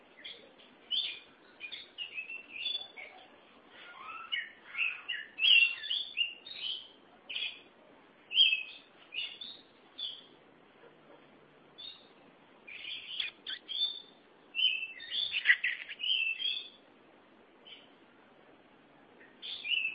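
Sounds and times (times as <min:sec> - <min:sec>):
Oriental magpie-robin singing varied whistles: 0:00.9 - 0:03.0, 0:04.0 - 0:07.6, 0:08.3 - 0:10.3, 0:12.7 - 0:16.8, 0:19.4 - 0:19.9.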